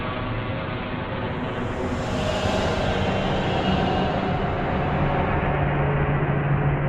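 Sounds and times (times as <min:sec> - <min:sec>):
slow pitch swells: 0:00.1 - 0:06.7.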